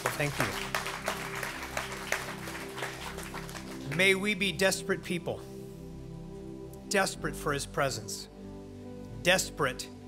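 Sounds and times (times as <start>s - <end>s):
audience applause at a church service: 0.0s - 4.2s
speech: 0.2s - 0.8s, 3.9s - 5.5s, 6.9s - 8.3s, 9.2s - 10.0s.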